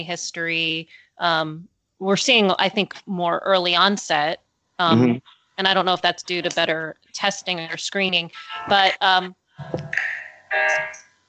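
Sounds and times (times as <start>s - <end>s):
speech: 0.0s - 11.1s
cell phone ringtone: 9.6s - 11.1s.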